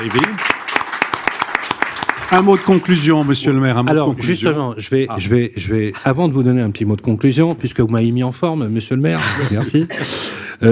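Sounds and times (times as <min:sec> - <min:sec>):
speech: 0:00.0 - 0:00.6, 0:02.3 - 0:10.7
audience applause: 0:00.0 - 0:03.7
laughter: 0:09.1 - 0:10.3.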